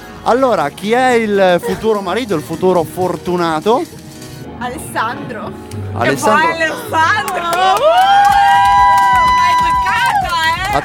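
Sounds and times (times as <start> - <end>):
speech: 0.2 - 4.0, 4.6 - 8.5
crowd cheering and shouting at a live entertainment show: 6.4 - 10.8.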